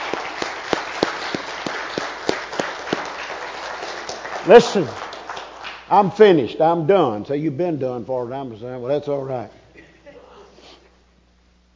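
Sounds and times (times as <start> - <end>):
audience applause: 0.0 - 6.4
speech: 4.4 - 5.0, 5.9 - 9.6.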